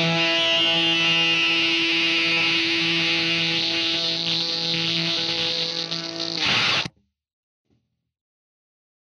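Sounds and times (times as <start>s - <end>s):
octave bass effect pedal on bass guitar: 0.0s - 6.9s.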